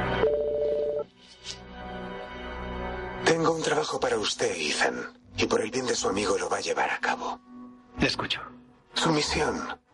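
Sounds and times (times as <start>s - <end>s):
mobile phone ringing: 0.2s - 1.1s
speech: 3.3s - 9.8s.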